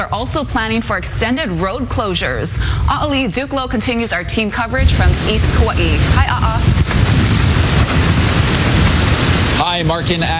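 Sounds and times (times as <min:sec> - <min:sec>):
speech: 0:00.0 - 0:06.9, 0:09.6 - 0:10.3
strong wind at Po'ipu Beach Park, Kauai: 0:04.6 - 0:10.3
heavy rain at Po'ipu Beach Park, Kauai: 0:04.8 - 0:10.3
large surf waves at Po'ipu Beach Park, Kauai: 0:04.8 - 0:10.3.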